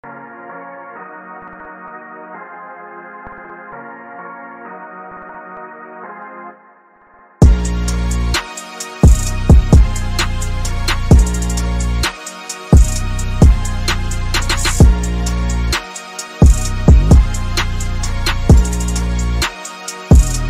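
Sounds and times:
hip hop beat: 0:07.4 - 0:20.4.

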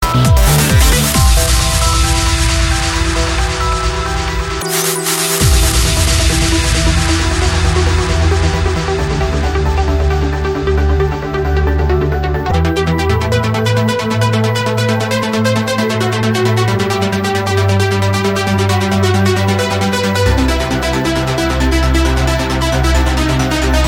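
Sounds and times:
trance mix: 0:00.0 - 0:23.8.

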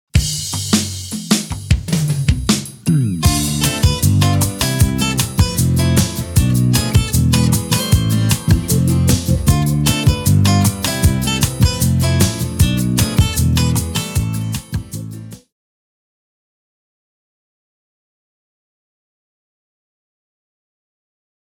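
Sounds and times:
alternative funk music: 0:00.1 - 0:15.5.

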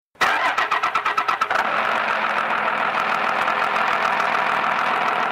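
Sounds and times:
Cummins engine starting: 0:00.2 - 0:05.2.

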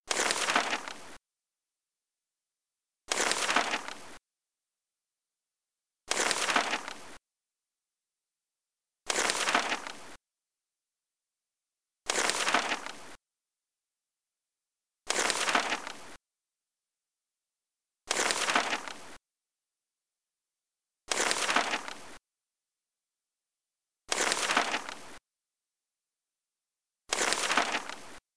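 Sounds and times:
page flipping: 0:00.1 - 0:01.2, 0:03.1 - 0:04.2, 0:06.1 - 0:07.2, 0:09.1 - 0:10.2, 0:12.1 - 0:13.2, 0:15.1 - 0:16.2, 0:18.1 - 0:19.2, 0:21.1 - 0:22.2, 0:24.1 - 0:25.2, 0:27.1 - 0:28.2.

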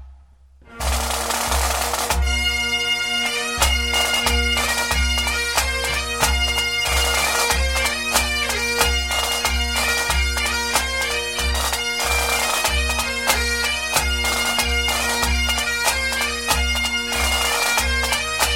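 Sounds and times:
bagpipers playing: 0:00.6 - 0:18.5.

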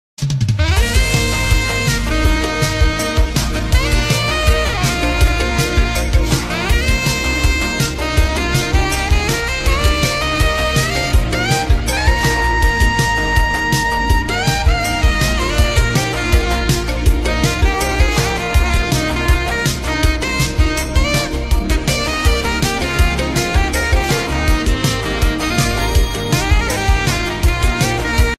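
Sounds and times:
vaporwave saxophone: 0:00.5 - 0:28.3.

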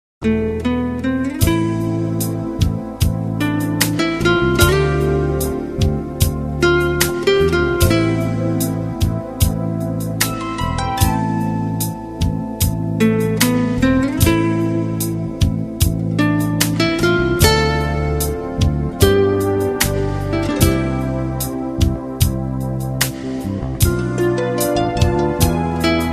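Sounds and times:
romantic guitar music: 0:00.2 - 0:26.1.

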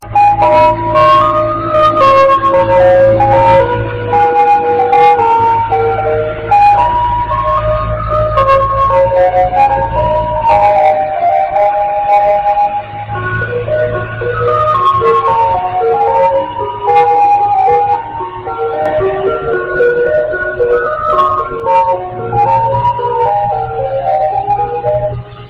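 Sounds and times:
ice cream truck: 0:00.0 - 0:25.4.

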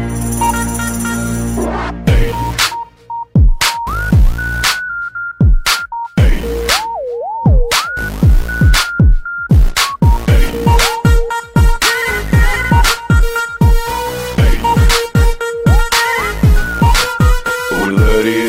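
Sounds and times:
hard bass music: 0:00.2 - 0:04.9, 0:05.5 - 0:18.4.

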